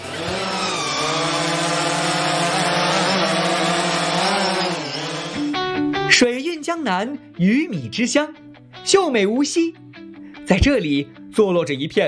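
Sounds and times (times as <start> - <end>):
drone buzzing in flight: 0.0 - 5.9
speech: 6.1 - 9.8, 10.5 - 12.0.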